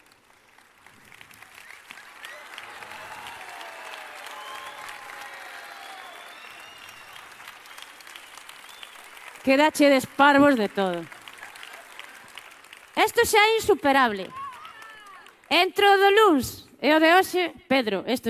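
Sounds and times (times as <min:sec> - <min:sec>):
audience applause: 0:00.0 - 0:15.6
faint whoops and cheers: 0:01.5 - 0:09.1, 0:11.3 - 0:12.5, 0:14.2 - 0:15.4
speech: 0:09.4 - 0:11.2, 0:13.0 - 0:14.4, 0:15.5 - 0:18.2.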